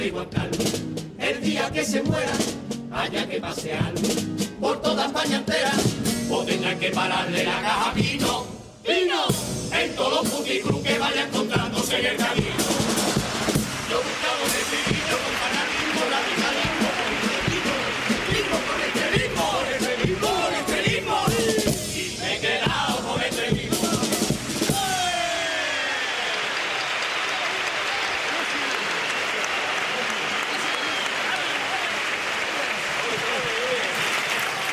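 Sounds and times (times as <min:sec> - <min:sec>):
speech: 0:00.0 - 0:00.8, 0:01.4 - 0:13.1
crowd cheers and shouts: 0:12.1 - 0:23.0, 0:23.7 - 0:34.7
crowd applause: 0:12.2 - 0:21.7, 0:24.7 - 0:34.7.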